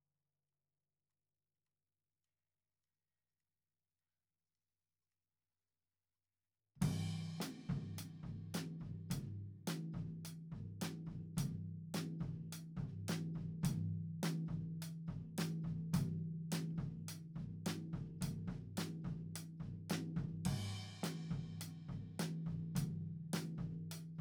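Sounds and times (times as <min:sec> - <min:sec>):
tom drum: 0:06.8 - 0:24.2.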